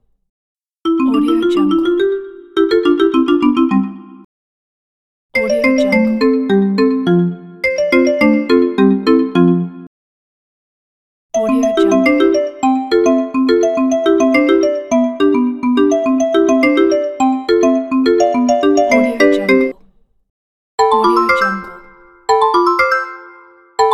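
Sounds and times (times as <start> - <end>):
smartphone marimba sound: 0.9 - 4.0, 5.4 - 9.7, 11.4 - 19.8, 20.8 - 23.9.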